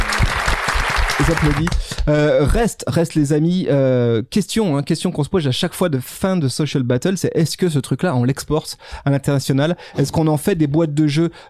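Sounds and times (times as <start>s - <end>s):
game-show audience applause: 0.0s - 2.1s
speech: 1.2s - 11.4s.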